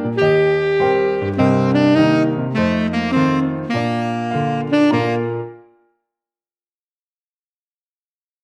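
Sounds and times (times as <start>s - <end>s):
tenor saxophone playing an etude: 0.0s - 5.9s.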